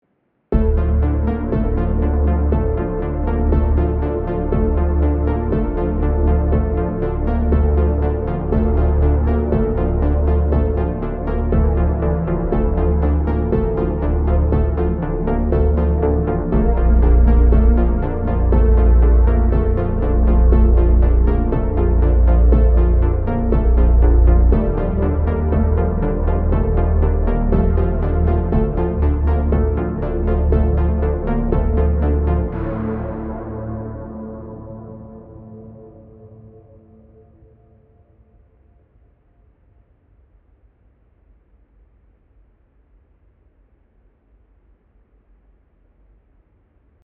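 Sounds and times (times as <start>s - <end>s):
fat synth sequence: 0.6s - 36.8s.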